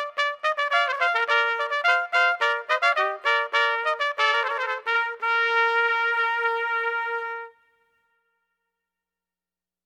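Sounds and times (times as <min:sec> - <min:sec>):
duo playing: 0:00.0 - 0:07.6
fanfare: 0:00.0 - 0:07.9.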